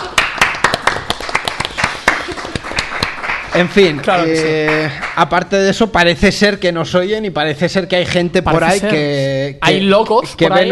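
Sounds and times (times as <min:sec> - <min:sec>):
applause: 0:00.0 - 0:05.2
speech: 0:03.6 - 0:10.7.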